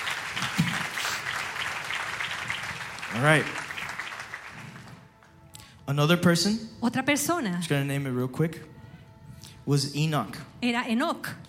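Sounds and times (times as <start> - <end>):
audience applause: 0.0 - 5.4
speech: 3.1 - 3.6, 5.9 - 8.8, 9.6 - 11.4.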